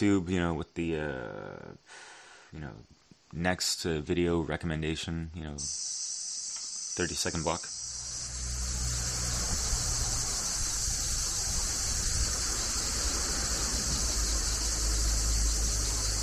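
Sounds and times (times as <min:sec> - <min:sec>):
speech: 0:00.0 - 0:06.2, 0:07.0 - 0:07.8
chorus of cicadas buzzing: 0:05.6 - 0:16.2.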